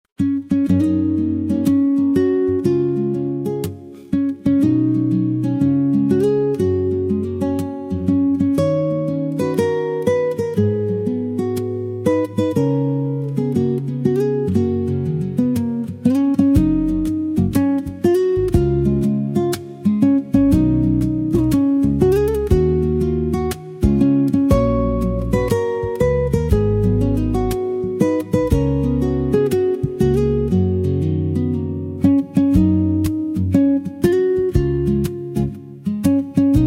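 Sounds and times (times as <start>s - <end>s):
soft instrumental guitar melody of a birthday song: 0.2s - 36.6s.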